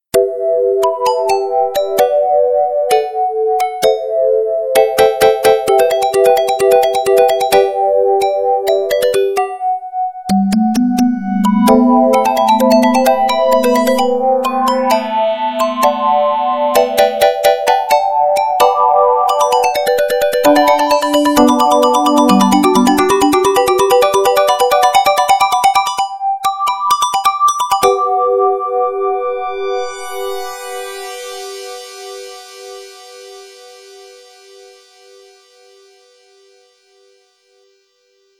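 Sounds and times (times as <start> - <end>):
piano: 0.1 - 35.2.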